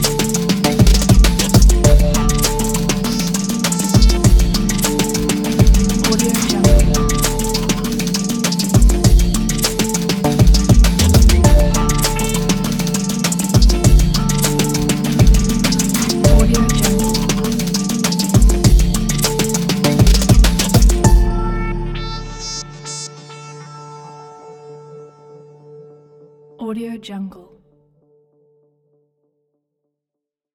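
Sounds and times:
glitchy hip hop beat: 0.0s - 23.1s.

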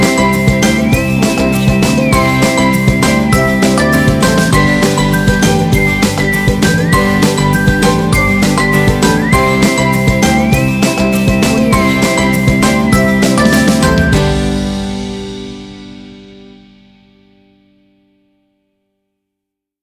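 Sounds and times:
happy summer ukulele music: 0.0s - 15.4s.

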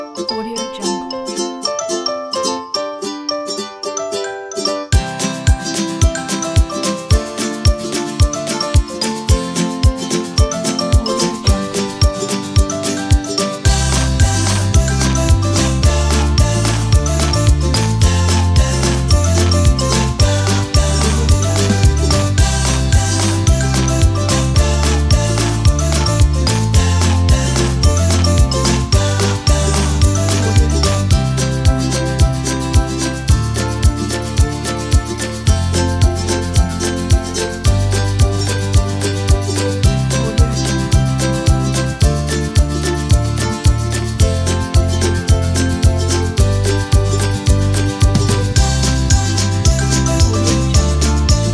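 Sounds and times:
upbeat music: 0.3s - 1.9s, 4.9s - 51.5s.

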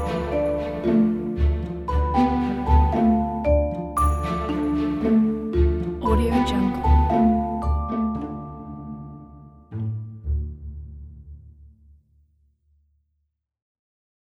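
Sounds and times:
magical fairy documentary music: 0.0s - 10.9s.

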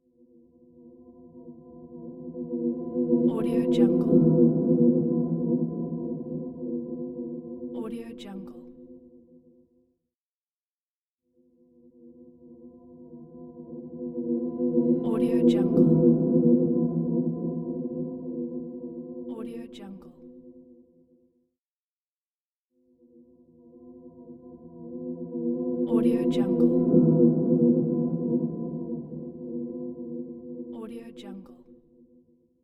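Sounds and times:
eerie ghost sound: 0.8s - 8.6s, 12.2s - 19.5s, 23.6s - 30.9s.

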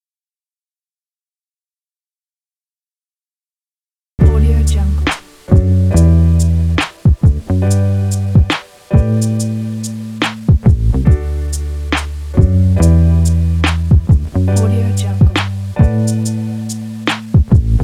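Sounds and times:
uplifting lofi hip hop music: 4.2s - 17.8s.

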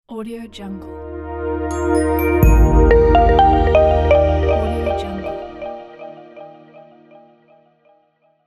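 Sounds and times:
clean audio logo: 1.0s - 7.6s.

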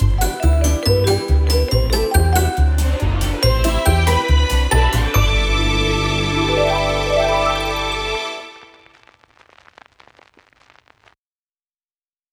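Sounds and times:
1950s TV logo jingle: 0.2s - 8.9s.

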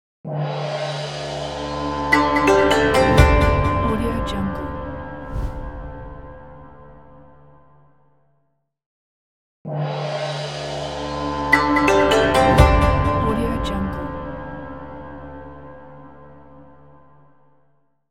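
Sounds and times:
oriental logo intro music: 0.4s - 7.8s, 9.8s - 16.4s.

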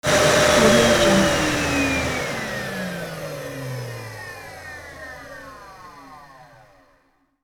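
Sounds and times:
power down sound: 0.1s - 2.7s.

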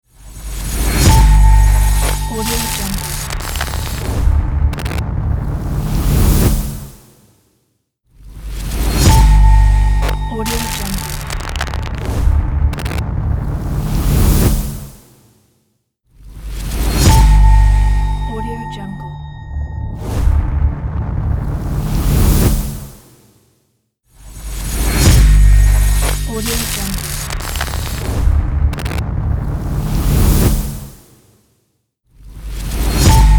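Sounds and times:
high tech glitch logo sound: 0.2s - 6.8s, 8.5s - 14.6s, 16.5s - 22.6s, 24.2s - 30.6s, 32.5s - 33.3s.

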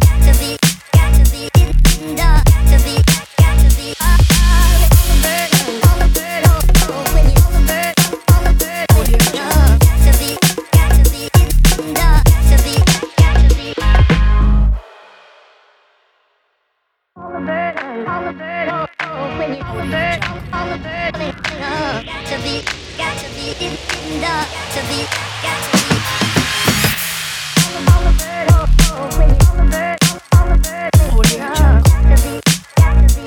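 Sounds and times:
hip hop drum kit: 0.0s - 15.4s, 23.8s - 33.2s.

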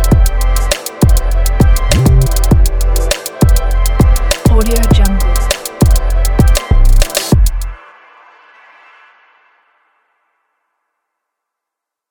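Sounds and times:
trap beat: 0.0s - 7.8s.

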